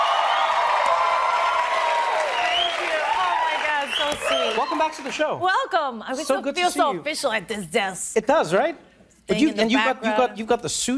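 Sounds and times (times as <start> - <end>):
audience applause: 0.0 - 5.4
speech: 4.4 - 10.9.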